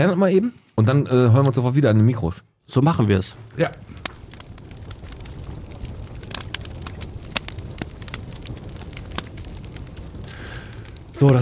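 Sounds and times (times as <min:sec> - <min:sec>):
speech: 0:00.0 - 0:03.9, 0:11.2 - 0:11.4
barbecue grill fire crackling: 0:02.8 - 0:11.4.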